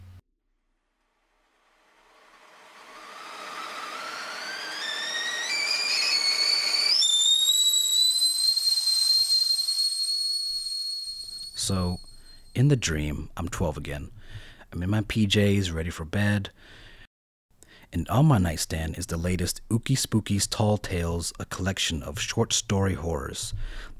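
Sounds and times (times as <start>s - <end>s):
kettle whistling: 2.4s - 12.6s
speech: 11.7s - 16.8s, 17.9s - 23.9s.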